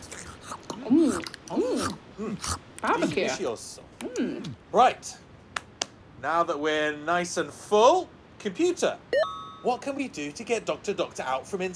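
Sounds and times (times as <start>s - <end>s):
chewing and biting on cucumber: 0.0s - 4.6s
pleased vocal murmurs: 0.0s - 4.6s
speech: 1.5s - 5.2s, 6.2s - 11.7s.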